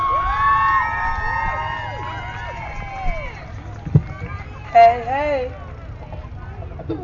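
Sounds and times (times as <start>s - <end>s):
crowd cheering and whooping: 0.0s - 5.0s.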